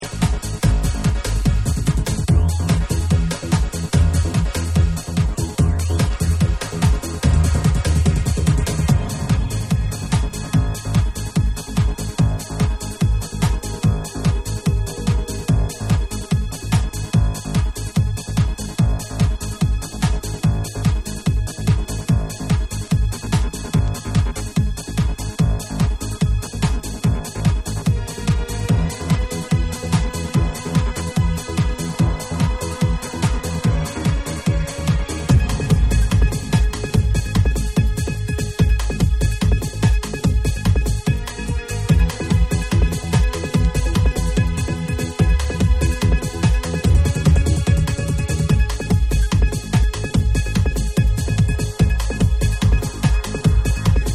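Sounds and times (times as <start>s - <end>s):
instrumental music: 0.0s - 54.1s.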